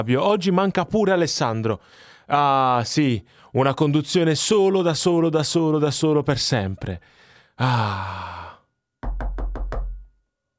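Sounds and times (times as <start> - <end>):
speech: 0.0 - 8.4
knocking on a door: 9.0 - 10.2.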